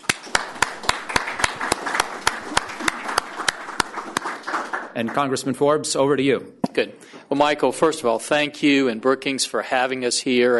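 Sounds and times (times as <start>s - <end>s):
sharp single clap: 0.0s - 4.8s
audience applause welcoming speakers at a Brookings event: 0.0s - 5.4s
speech: 5.0s - 10.5s.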